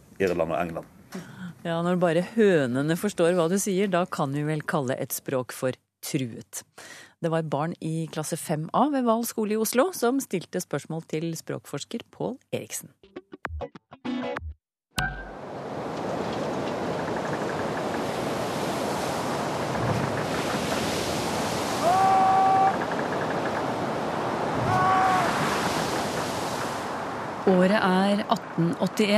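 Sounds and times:
speech: 0.2 - 13.0, 13.6 - 13.8, 27.5 - 29.1
gusts of wind: 15.3 - 29.1
stormy sea surf roaring on the coast: 15.3 - 29.1.

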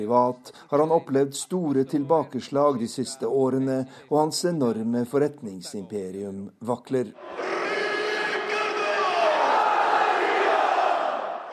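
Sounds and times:
speech: 0.0 - 7.6
football fans cheering after victory: 7.2 - 11.5.

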